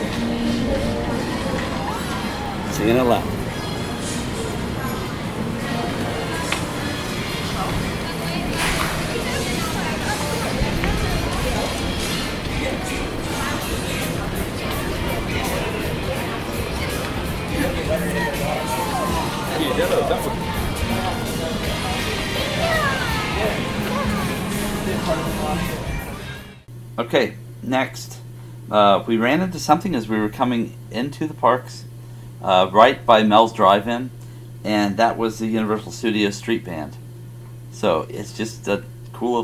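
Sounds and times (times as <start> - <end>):
murmur of many voices in the Universal Studios theme park: 0.0 - 26.7
speech: 2.8 - 3.4, 27.1 - 28.1, 28.7 - 37.0, 37.8 - 39.4.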